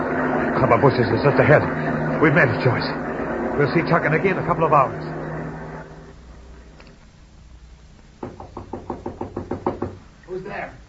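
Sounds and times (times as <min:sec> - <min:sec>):
murky low sound: 0:00.0 - 0:07.9
speech: 0:00.6 - 0:03.0, 0:03.6 - 0:05.2
knocking on a door: 0:08.2 - 0:10.0.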